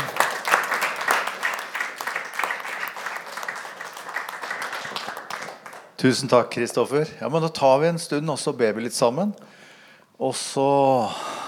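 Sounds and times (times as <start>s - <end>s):
audience applause: 0.0s - 6.0s
speech: 6.0s - 9.6s, 10.2s - 11.3s.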